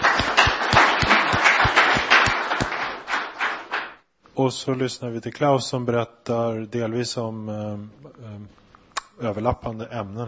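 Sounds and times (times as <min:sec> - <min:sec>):
audience applause: 0:00.0 - 0:03.9
speech: 0:04.4 - 0:08.6, 0:09.2 - 0:10.2.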